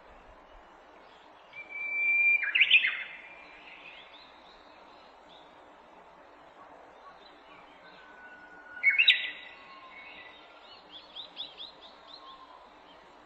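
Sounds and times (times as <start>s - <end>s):
Japanese bush warbler song: 0.0s - 5.7s, 7.0s - 13.2s.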